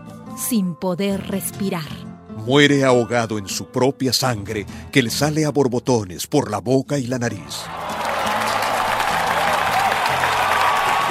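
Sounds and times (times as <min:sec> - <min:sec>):
speech: 0:00.4 - 0:07.9
crowd cheering and applauding in a bullring: 0:07.6 - 0:11.1.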